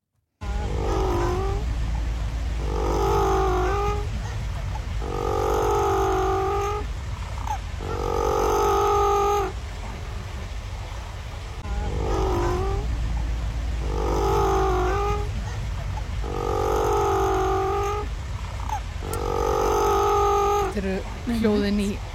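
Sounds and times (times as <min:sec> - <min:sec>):
penguin calling: 0:00.4 - 0:01.6, 0:02.6 - 0:09.6, 0:11.6 - 0:12.9, 0:13.8 - 0:22.0
low rumble: 0:00.4 - 0:22.1.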